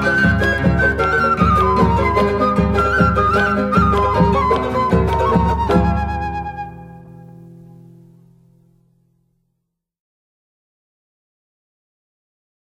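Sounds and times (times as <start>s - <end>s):
Andean flute playing a bailecito: 0.0s - 7.8s.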